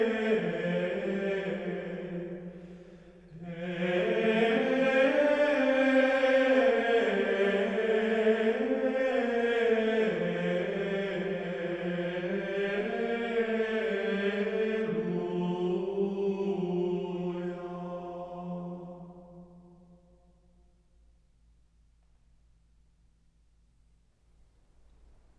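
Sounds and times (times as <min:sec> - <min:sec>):
antiphon chant in mode 6: 0:00.0 - 0:20.2.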